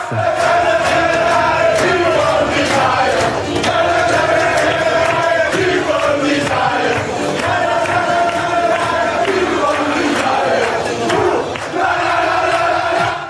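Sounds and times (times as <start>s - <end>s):
rhythmic shouts: 0.0s - 13.2s
team of men singing chosen anthem in locker room: 0.0s - 13.2s.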